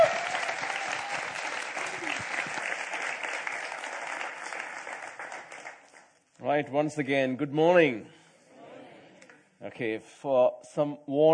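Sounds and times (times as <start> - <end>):
church congregation applause at Grace Church welcoming a guest preacher: 0.0 - 6.2
speech: 6.6 - 8.2, 9.7 - 11.3.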